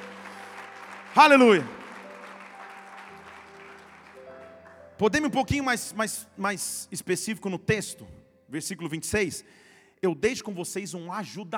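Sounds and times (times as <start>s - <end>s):
audience applause: 0.0s - 5.7s
speech: 1.2s - 1.8s, 5.0s - 11.5s.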